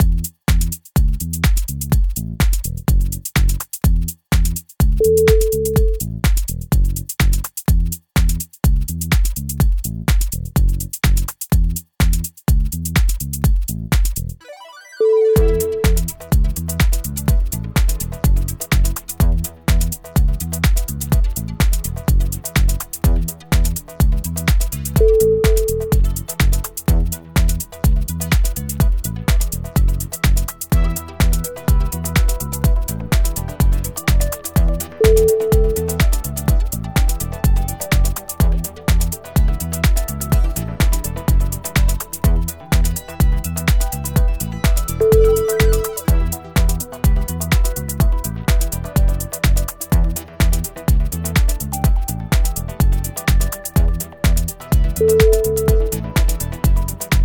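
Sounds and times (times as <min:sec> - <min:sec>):
tech groove: 0:00.0 - 0:14.2, 0:15.2 - 0:57.2.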